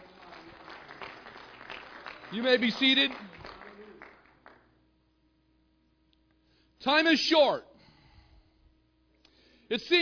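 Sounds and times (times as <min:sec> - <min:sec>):
audience clapping hands: 0:00.0 - 0:04.8
speech: 0:02.3 - 0:03.4, 0:06.8 - 0:07.7, 0:09.7 - 0:09.9.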